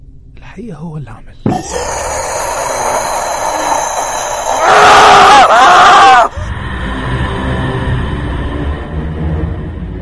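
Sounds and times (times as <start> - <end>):
speech: 0.6 - 2.4
man screaming in terror: 1.5 - 6.4.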